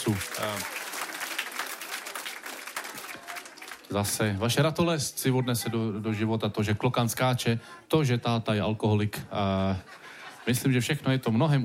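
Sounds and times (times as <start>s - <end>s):
audience applause: 0.0s - 4.4s
speech: 0.1s - 0.8s, 3.9s - 11.6s
laughter: 9.5s - 10.8s.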